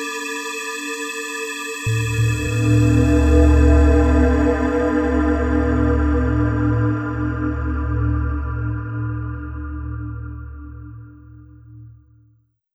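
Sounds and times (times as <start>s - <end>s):
bell atmosphere: 1.9s - 11.5s.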